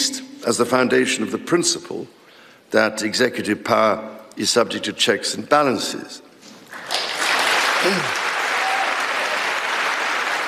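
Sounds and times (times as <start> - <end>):
speech: 0.4 - 6.3, 7.8 - 8.2
applause and standing ovation: 6.7 - 10.4.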